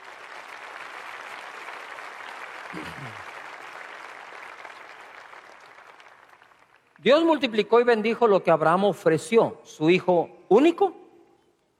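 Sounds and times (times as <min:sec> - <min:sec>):
audience applause: 0:00.0 - 0:07.0
speech: 0:02.7 - 0:03.3, 0:07.0 - 0:11.0.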